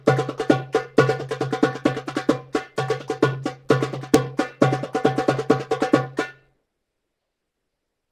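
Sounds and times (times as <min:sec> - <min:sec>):
new drumming patterns: 0:00.0 - 0:06.4.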